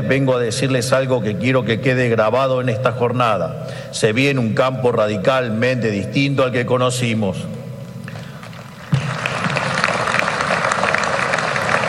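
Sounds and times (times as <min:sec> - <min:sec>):
speech: 0:00.1 - 0:07.6
hesitant audience applause: 0:08.8 - 0:11.8.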